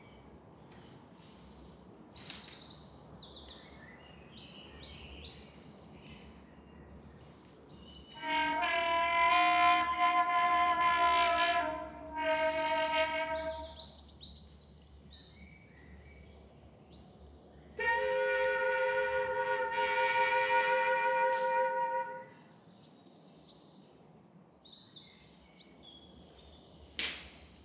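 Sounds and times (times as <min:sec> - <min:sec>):
forest dawn ambience: 0:00.0 - 0:27.6.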